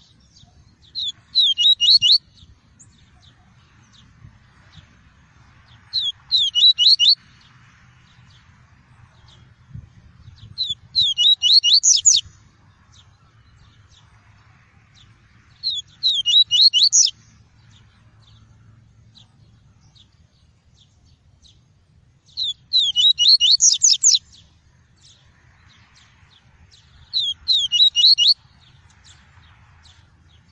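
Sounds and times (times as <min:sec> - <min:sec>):
double-collared seedeater song: 0:01.0 - 0:02.3, 0:06.0 - 0:07.2, 0:10.6 - 0:12.2, 0:15.7 - 0:17.1, 0:22.4 - 0:24.2, 0:27.1 - 0:28.4.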